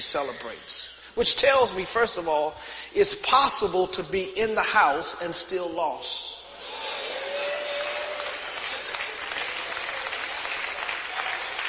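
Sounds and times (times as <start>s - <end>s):
speech: 0.0s - 6.4s
audience clapping: 7.2s - 11.6s.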